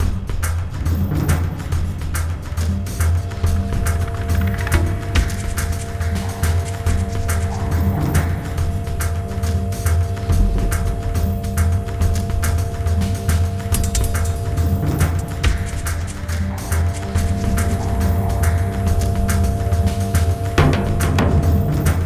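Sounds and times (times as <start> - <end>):
robotic sound loop: 1.1 - 22.0.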